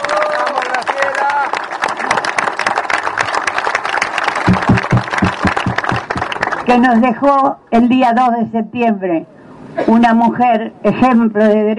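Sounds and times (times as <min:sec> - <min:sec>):
audience applause: 0:00.0 - 0:06.7
speech: 0:06.7 - 0:11.7.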